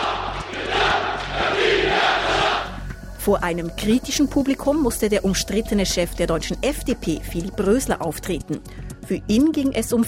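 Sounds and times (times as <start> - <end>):
crowd of supporters cheering in the Damascus Opera House: 0.0 - 2.8
speech: 3.2 - 10.0.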